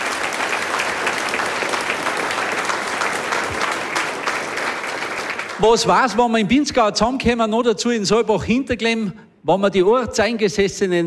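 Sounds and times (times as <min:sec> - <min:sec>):
audience applause: 0:00.0 - 0:06.0
speech: 0:05.6 - 0:11.0.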